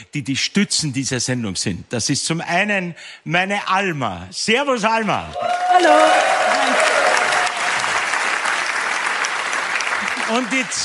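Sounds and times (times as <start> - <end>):
speech: 0.0 - 6.9, 10.3 - 10.8
audience applause: 5.4 - 10.8.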